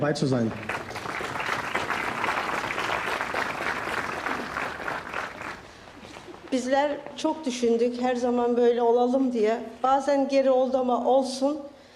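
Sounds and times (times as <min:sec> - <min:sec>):
speech: 0:00.0 - 0:00.8, 0:06.5 - 0:11.7
audience applause at a public gathering: 0:00.3 - 0:06.5.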